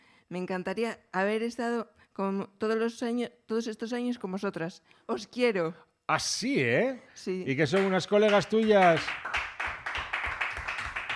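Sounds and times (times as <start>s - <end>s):
speech: 0.3s - 9.3s
applause: 7.7s - 11.1s.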